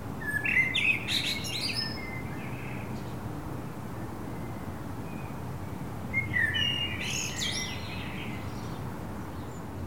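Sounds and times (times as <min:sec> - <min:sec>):
Common blackbird song: 0:00.2 - 0:03.2, 0:04.0 - 0:09.7.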